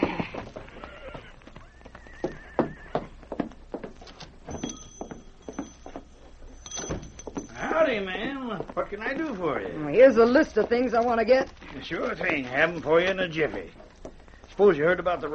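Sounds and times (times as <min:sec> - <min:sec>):
horse whinnying: 0:00.0 - 0:03.3
hooves clopping: 0:00.0 - 0:15.3
speech: 0:07.9 - 0:13.8, 0:14.6 - 0:15.3.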